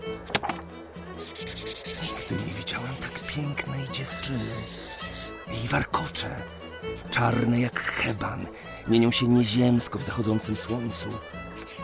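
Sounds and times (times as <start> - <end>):
pencil sketching on paper: 1.1 - 3.4, 4.1 - 5.5, 10.0 - 11.8
speech: 3.4 - 4.9, 5.5 - 11.4.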